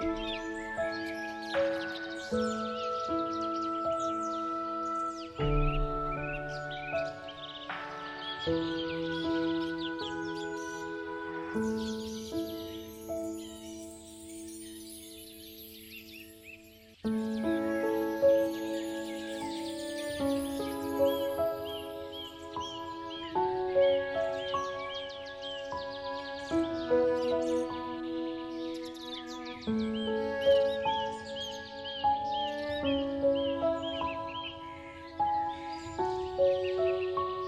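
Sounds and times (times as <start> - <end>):
birds: 0.0 - 37.4
relaxing piano music: 0.0 - 37.4.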